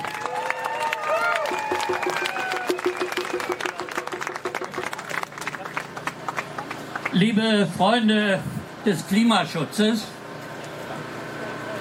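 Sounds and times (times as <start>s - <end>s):
audience applause: 0.0s - 7.2s
speech: 7.2s - 10.1s.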